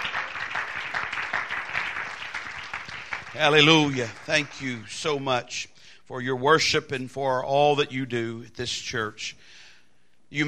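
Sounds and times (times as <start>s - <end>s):
audience clapping: 0.0s - 5.3s
speech: 3.4s - 9.6s.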